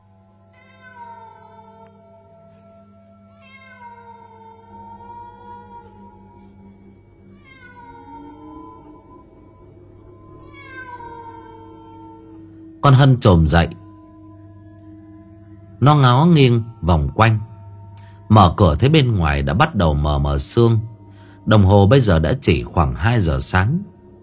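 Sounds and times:
cat meowing: 0.5s - 2.2s, 3.3s - 6.7s, 7.3s - 9.6s, 10.4s - 12.4s
speech: 12.8s - 13.8s, 15.8s - 17.5s, 18.3s - 20.9s, 21.5s - 23.9s.

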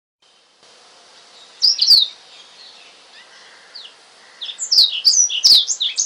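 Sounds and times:
Oriental magpie-robin whistled song: 1.4s - 3.3s, 4.4s - 6.0s.

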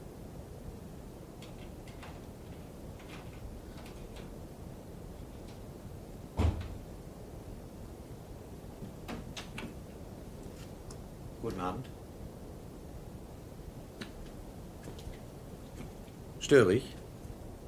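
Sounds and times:
steady hiss: 0.0s - 17.6s
door being unlocked with a caretaker's key and opened: 1.4s - 4.4s
speech: 11.6s - 12.0s, 16.5s - 17.0s.

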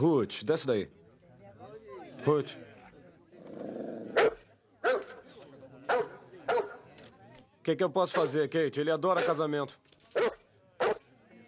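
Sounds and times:
speech: 0.0s - 1.0s, 2.2s - 2.7s, 7.6s - 10.3s
dog barking: 4.2s - 5.2s, 5.9s - 6.8s, 10.2s - 11.1s.

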